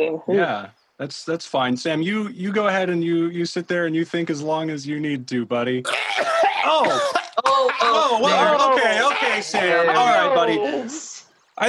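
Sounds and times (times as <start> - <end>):
speech: 0.0 - 11.6
harsh coughing: 5.9 - 8.2
person groaning: 5.9 - 9.3
laughter: 5.9 - 11.2.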